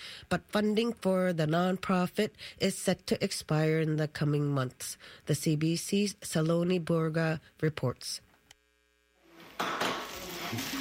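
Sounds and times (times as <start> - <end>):
speech: 0.3 - 8.3, 9.6 - 9.8, 10.5 - 10.7
burger frying sizzle: 9.4 - 10.7.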